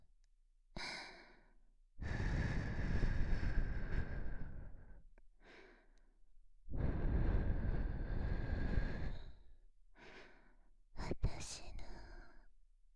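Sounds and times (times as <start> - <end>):
breathing: 0.8 - 10.7
whispering: 11.0 - 12.5.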